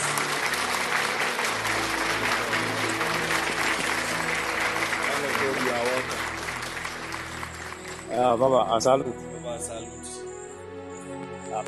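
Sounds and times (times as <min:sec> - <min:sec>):
audience applause: 0:00.0 - 0:08.5
speech: 0:08.2 - 0:10.0.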